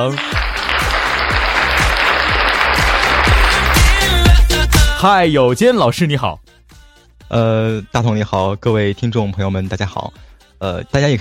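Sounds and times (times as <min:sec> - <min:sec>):
speech: 0:00.0 - 0:00.4, 0:05.0 - 0:06.6, 0:07.3 - 0:11.1
crowd applauding: 0:00.0 - 0:04.9
low thumping beat: 0:00.3 - 0:05.4.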